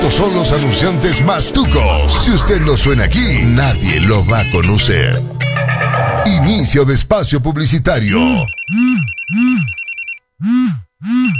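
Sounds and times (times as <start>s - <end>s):
speech: 0.1s - 5.3s, 6.3s - 9.8s, 10.4s - 11.3s
telephone ringing: 5.2s - 6.7s, 8.1s - 10.2s.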